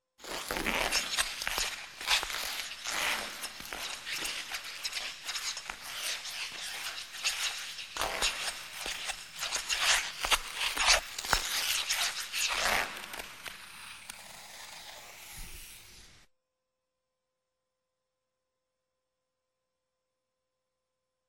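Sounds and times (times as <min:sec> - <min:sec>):
skates on ice: 0:00.2 - 0:16.3.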